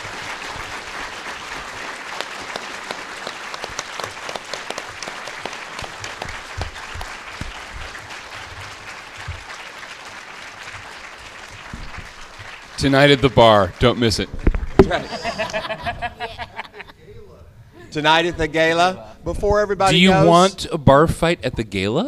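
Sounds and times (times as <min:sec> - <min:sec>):
audience applause for a conference panel: 0:00.0 - 0:14.0
speech: 0:12.8 - 0:16.5, 0:17.9 - 0:22.0
laughter: 0:14.8 - 0:17.0.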